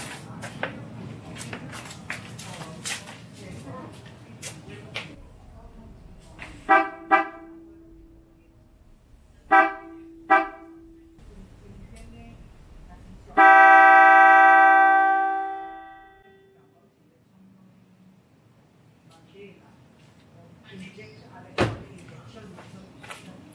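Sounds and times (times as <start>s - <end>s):
Mitsuba Dolce 3 car horn on Nissan Terra, regular mode: 6.6s - 8.0s, 9.4s - 11.2s, 13.4s - 16.6s.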